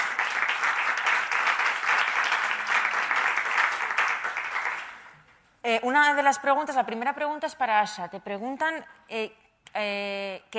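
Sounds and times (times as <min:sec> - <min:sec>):
audience applause: 0:00.0 - 0:05.1
speech: 0:05.7 - 0:10.5.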